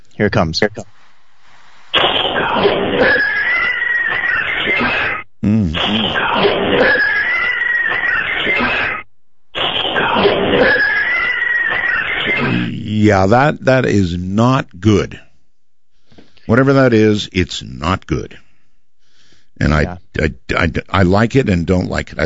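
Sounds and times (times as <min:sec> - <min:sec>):
speech: 0:00.2 - 0:01.0, 0:05.4 - 0:07.1, 0:13.0 - 0:15.3, 0:16.5 - 0:18.4, 0:19.6 - 0:22.2
eerie cat sound recording: 0:02.0 - 0:12.8.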